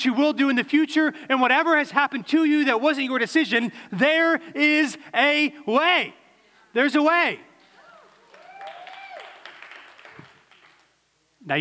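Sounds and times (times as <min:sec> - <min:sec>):
speech: 0:00.0 - 0:06.2, 0:06.8 - 0:07.5
whoops and cheers: 0:07.8 - 0:09.8
audience applause: 0:08.0 - 0:10.9.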